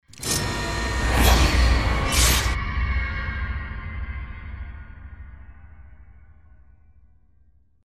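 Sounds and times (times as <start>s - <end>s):
scary music sting: 0.2s - 4.4s.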